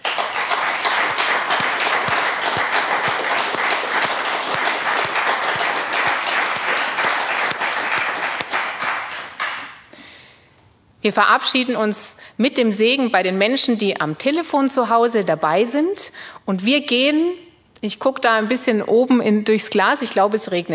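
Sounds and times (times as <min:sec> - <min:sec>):
audience applause: 0:00.0 - 0:09.8
speech: 0:11.0 - 0:20.7.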